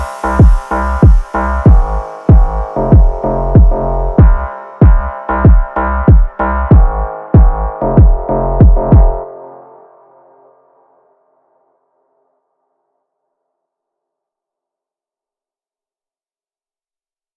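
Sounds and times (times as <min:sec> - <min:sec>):
phonk music: 0:00.0 - 0:10.2.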